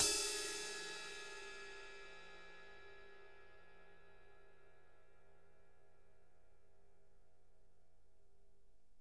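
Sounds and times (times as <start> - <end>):
ride cymbal: 0.0 - 2.4.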